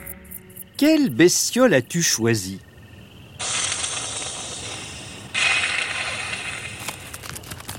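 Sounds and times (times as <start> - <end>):
speech: 0.8 - 2.7
opossum hissing and spitting: 3.4 - 7.2.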